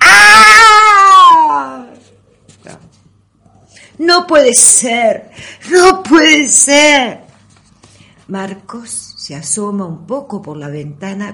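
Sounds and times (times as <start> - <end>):
elderly woman screaming in terror: 0.0 - 2.0
speech: 4.3 - 7.2, 8.3 - 11.3.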